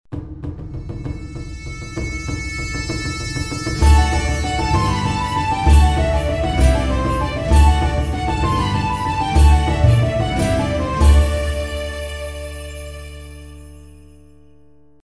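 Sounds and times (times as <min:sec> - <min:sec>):
tavern music: 0:03.0 - 0:14.0.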